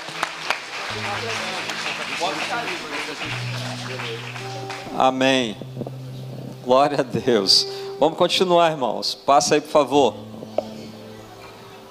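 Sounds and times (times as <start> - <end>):
audience applauding: 0.0 - 5.7
speech: 0.9 - 5.9, 6.7 - 10.3.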